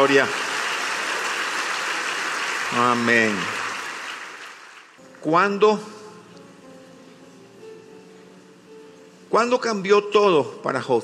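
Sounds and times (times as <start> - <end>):
speech: 0.0 - 0.4, 2.7 - 3.6, 5.2 - 6.0, 9.3 - 11.0
crowd applauding: 0.0 - 5.0.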